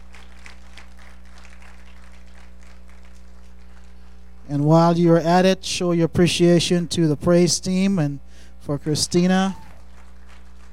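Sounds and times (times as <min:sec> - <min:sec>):
audience clapping: 0:00.0 - 0:04.4, 0:09.1 - 0:10.7
speech: 0:04.5 - 0:09.6.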